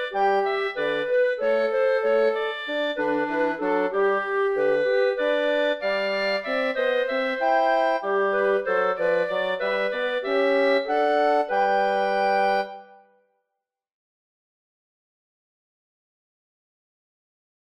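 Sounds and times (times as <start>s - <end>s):
wind trio playing: 0.0s - 12.9s.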